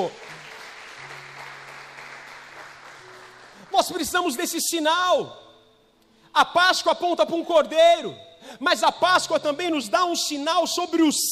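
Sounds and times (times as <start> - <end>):
speech: 0.0 - 0.2, 3.8 - 5.5, 6.4 - 11.3
audience applause: 0.0 - 3.7.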